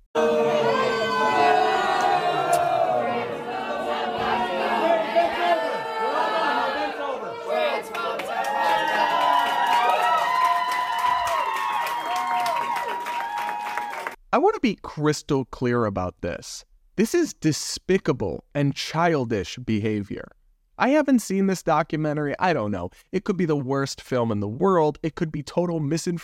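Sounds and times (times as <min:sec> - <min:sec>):
protesters chattering inside a venue: 0:00.2 - 0:09.3
protesters shouting: 0:00.2 - 0:14.2
scattered clapping: 0:07.8 - 0:14.2
speech: 0:14.6 - 0:26.2.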